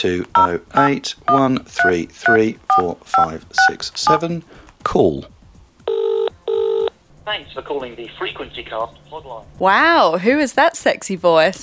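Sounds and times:
speech: 0:00.0 - 0:05.4, 0:07.3 - 0:11.6
keypad tones from the BT SmartTalk app: 0:00.4 - 0:04.2.

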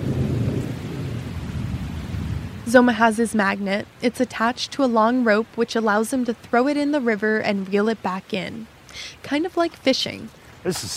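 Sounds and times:
thunder from an approaching thunderstorm: 0:00.0 - 0:02.6
speech: 0:02.7 - 0:10.9.

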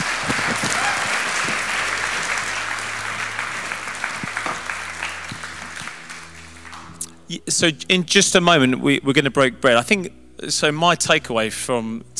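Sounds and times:
round of applause: 0:00.0 - 0:07.1
speech: 0:07.3 - 0:12.1.

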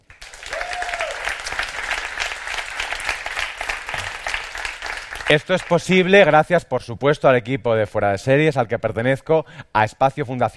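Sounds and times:
audience applause: 0:00.0 - 0:06.1
speech: 0:05.3 - 0:10.5.

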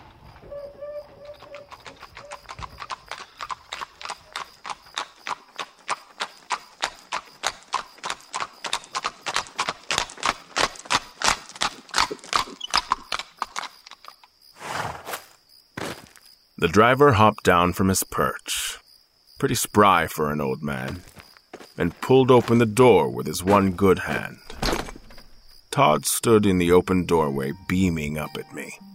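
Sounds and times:
horse-drawn carriage hooves clip-clopping: 0:00.0 - 0:14.3
faint insect or cricket chirping: 0:00.0 - 0:28.9
speech: 0:16.6 - 0:18.6, 0:19.4 - 0:21.1, 0:21.8 - 0:24.4, 0:25.8 - 0:28.8.

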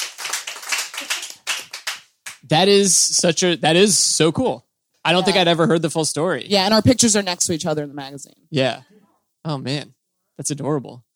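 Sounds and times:
people clapping: 0:00.0 - 0:02.5
speech: 0:02.4 - 0:11.1.

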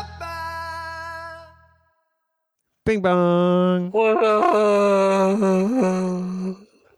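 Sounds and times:
speech: 0:02.9 - 0:04.6
person yawning: 0:03.9 - 0:06.8.

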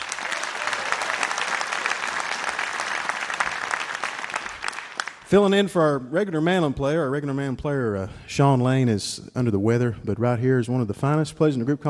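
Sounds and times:
concert audience applause: 0:00.0 - 0:05.3
speech: 0:05.3 - 0:11.8.

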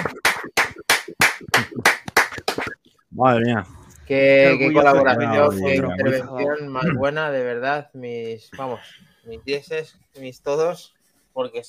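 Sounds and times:
loud sharp claps: 0:00.0 - 0:02.8
speech: 0:03.2 - 0:11.6.

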